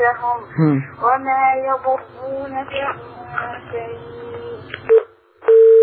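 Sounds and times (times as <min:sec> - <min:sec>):
speech: 0:00.1 - 0:04.2
short beep: 0:04.9 - 0:05.8
telephone busy tone after a dropped call: 0:04.9 - 0:05.8.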